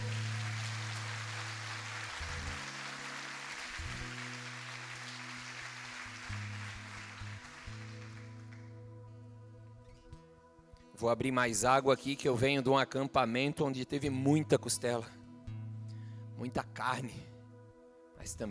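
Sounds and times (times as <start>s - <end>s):
audience applauding: 0.0s - 8.7s
speech: 11.0s - 15.2s, 16.4s - 17.3s, 18.2s - 18.4s.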